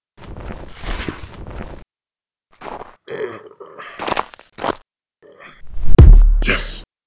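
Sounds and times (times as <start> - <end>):
kick drum: 6.0 - 6.6.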